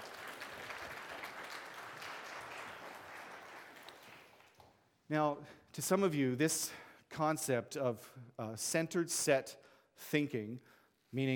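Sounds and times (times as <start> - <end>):
audience applause: 0.0 - 4.7
speech: 5.1 - 11.3.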